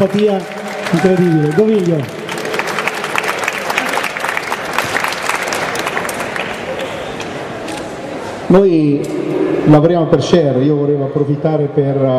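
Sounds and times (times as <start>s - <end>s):
speech: 0.0s - 2.2s, 8.5s - 12.1s
audience applause: 0.0s - 7.2s.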